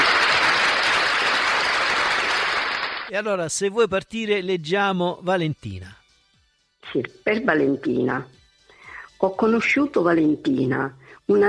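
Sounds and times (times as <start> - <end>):
crowd applause: 0.0 - 3.2
speech: 3.1 - 6.0, 6.8 - 8.4, 9.2 - 11.4.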